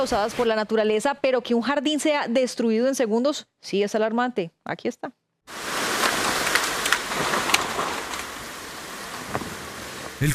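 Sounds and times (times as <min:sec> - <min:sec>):
speech: 0:00.0 - 0:05.7, 0:10.2 - 0:10.3
rain: 0:05.5 - 0:10.3
violent storm winds: 0:05.5 - 0:10.3.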